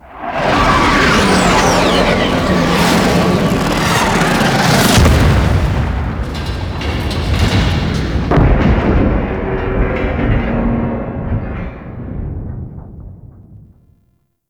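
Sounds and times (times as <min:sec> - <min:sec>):
sentient craft flying by: 0:00.0 - 0:07.6
skiff crash: 0:00.0 - 0:14.0.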